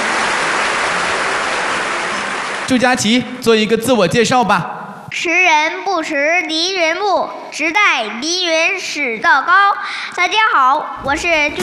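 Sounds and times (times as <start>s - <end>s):
audience applause on a Chinese television talent stage: 0.0s - 2.7s
speech: 2.7s - 11.6s.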